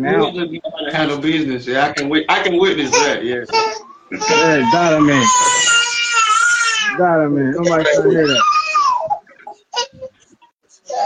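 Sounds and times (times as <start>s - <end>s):
speech: 0.0s - 5.6s, 7.0s - 8.6s
young boy crying: 3.6s - 7.0s, 7.7s - 9.2s.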